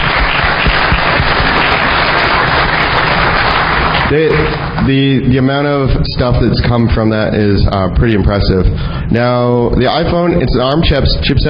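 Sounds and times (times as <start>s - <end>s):
crowd clapping: 0.0s - 5.2s
speech: 4.1s - 11.4s.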